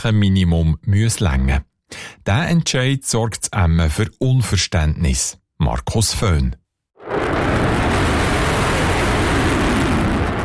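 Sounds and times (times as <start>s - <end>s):
speech: 0.0s - 7.6s
F-35 fighter jet taking off: 7.0s - 10.4s.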